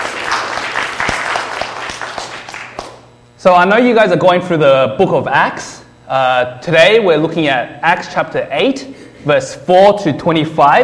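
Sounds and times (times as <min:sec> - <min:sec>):
audience applause: 0:00.0 - 0:03.0
speech: 0:03.4 - 0:10.8.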